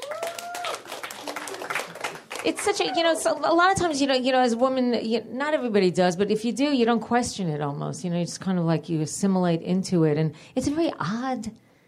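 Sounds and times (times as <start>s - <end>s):
audience whoops and high whistle-like cry: 0.0s - 0.8s
audience clapping: 0.0s - 3.6s
speech: 2.4s - 11.6s.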